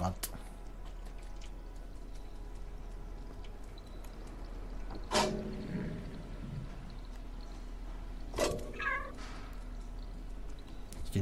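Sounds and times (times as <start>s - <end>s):
low steady hum: 0.0s - 11.2s
cat meowing: 8.7s - 9.2s.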